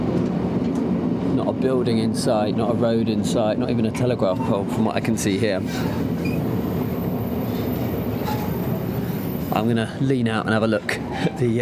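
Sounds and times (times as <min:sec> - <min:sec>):
train running on snowy railway tracks: 0:00.0 - 0:11.6
speech: 0:01.4 - 0:06.4, 0:09.6 - 0:11.6
faint metallic squeals: 0:05.8 - 0:06.6, 0:07.5 - 0:09.2.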